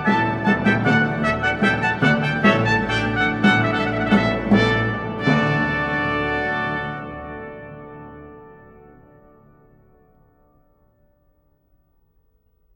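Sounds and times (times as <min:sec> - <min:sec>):
baroque trumpet fanfare: 0:00.0 - 0:09.8.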